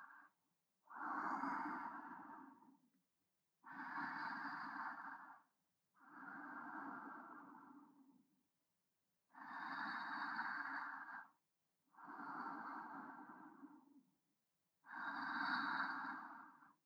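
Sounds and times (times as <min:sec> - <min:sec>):
breathing of a person lying alongside, centred: 0:00.9 - 0:02.8, 0:03.6 - 0:08.1, 0:09.3 - 0:11.4, 0:11.9 - 0:14.0, 0:14.8 - 0:16.8.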